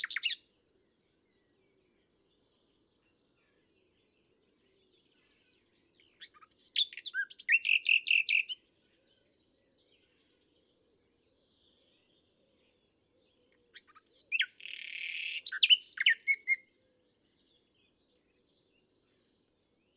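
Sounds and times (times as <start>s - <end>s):
common nightingale song: 0.0s - 0.5s, 1.3s - 19.9s.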